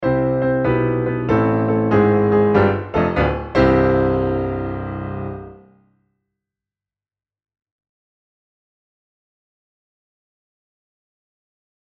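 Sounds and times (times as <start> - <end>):
musical riff: 0.0 - 5.7.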